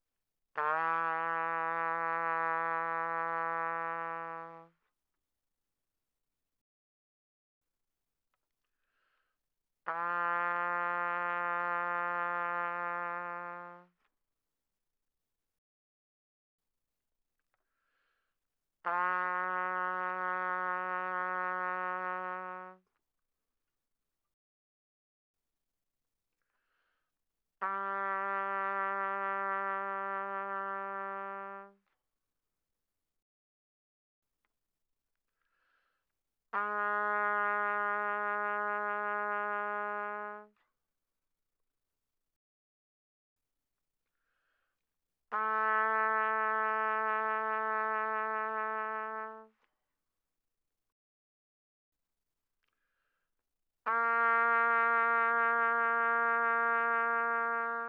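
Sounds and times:
soft trumpet with vibrato: 0.6 - 4.8, 9.9 - 14.0, 18.9 - 22.8, 27.6 - 31.8, 36.6 - 40.6, 45.3 - 49.7, 53.9 - 57.8.

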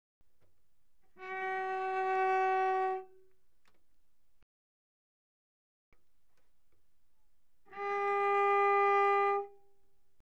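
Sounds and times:
cello arco pianissimo on the G string: 1.1 - 3.2, 7.7 - 9.6.

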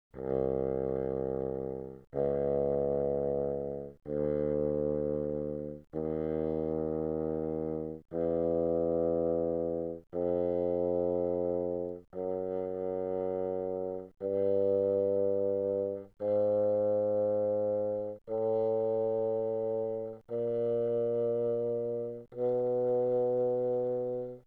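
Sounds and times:
bassoon playing pianissimo notes from C2 to B2: 0.2 - 24.4.

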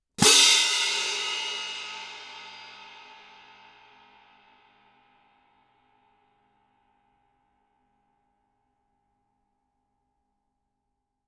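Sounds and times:
orchestral crash cymbals fortissimo: 0.2 - 4.2.

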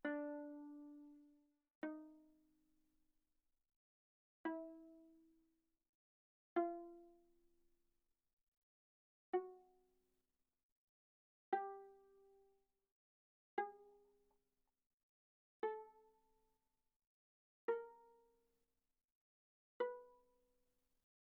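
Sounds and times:
viola pizzicato on the D string: 0.0 - 2.3, 4.5 - 5.2, 6.6 - 7.2, 9.4 - 9.7, 11.6 - 12.4, 15.6 - 16.2, 17.7 - 18.2, 19.8 - 20.2.

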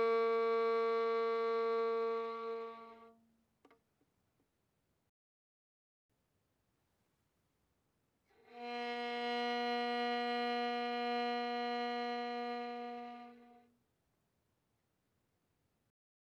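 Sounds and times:
violin bowed mezzo-forte on the G string: 0.0 - 3.3, 8.3 - 13.7.

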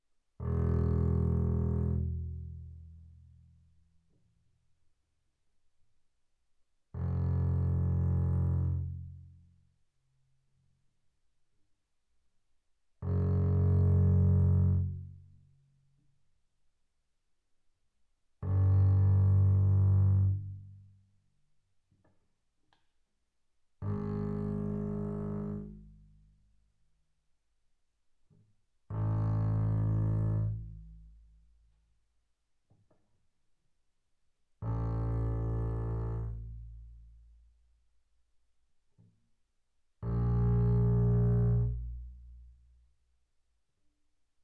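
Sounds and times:
double bass bowed fortissimo on the E string: 0.4 - 3.4, 7.0 - 9.4, 13.0 - 15.3, 18.4 - 20.9, 23.8 - 26.3, 28.9 - 31.4, 34.6 - 37.4, 40.0 - 42.7.

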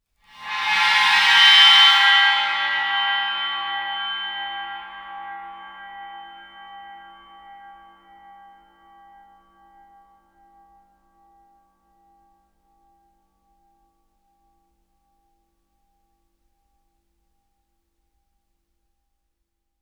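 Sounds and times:
suspended cymbal bowed with Chinese bow: 0.3 - 9.6.

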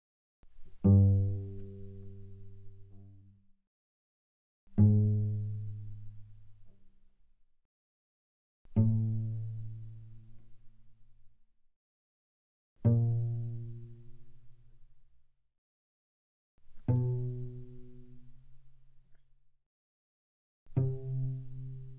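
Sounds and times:
cello pizzicato on the G string: 0.4 - 3.3, 4.8 - 6.8, 8.7 - 10.7, 12.8 - 14.7, 16.7 - 18.7, 20.7 - 21.9.

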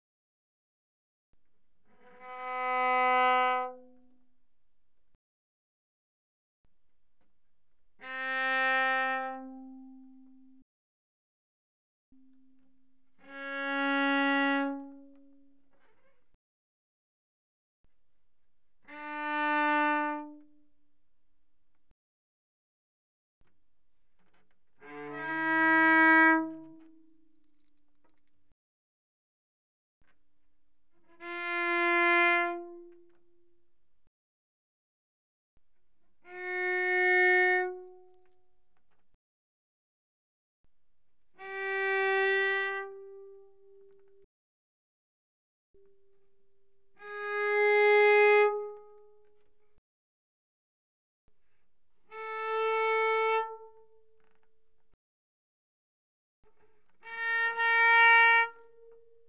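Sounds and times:
very soft bowed cello on the A string: 1.8 - 4.8, 7.2 - 10.6, 12.2 - 16.3, 18.8 - 20.8, 24.2 - 27.7, 31.0 - 33.5, 36.1 - 38.4, 41.3 - 44.3, 45.8 - 49.6, 52.0 - 54.5, 56.9 - 59.2.

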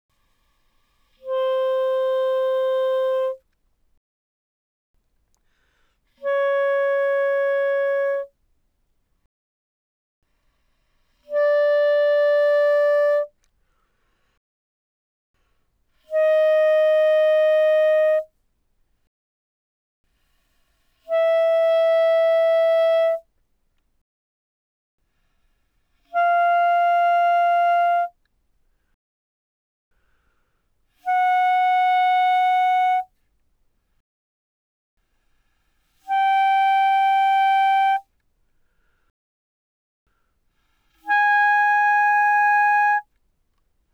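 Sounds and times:
B-flat clarinet notes played mezzo forte from C5 to B5: 1.2 - 3.4, 6.2 - 8.3, 11.3 - 13.3, 16.1 - 18.3, 21.1 - 23.2, 26.1 - 28.2, 31.0 - 33.1, 36.0 - 38.1, 41.0 - 43.1.

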